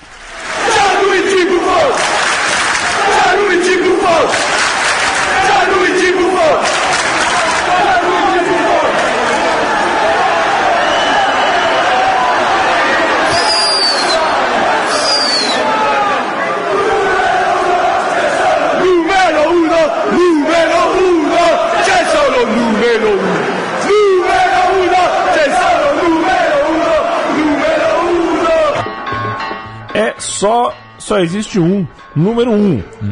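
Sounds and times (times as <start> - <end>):
large crowd of football fans chanting and singing: 0.0 - 32.0
sharp whistles: 13.3 - 14.3, 14.9 - 15.7
speech: 30.7 - 33.1.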